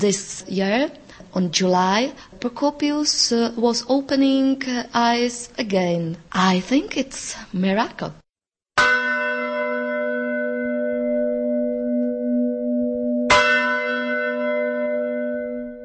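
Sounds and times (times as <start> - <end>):
speech: 0.0 - 8.2
church bell strikes from a Gothic bell tower: 8.8 - 15.8.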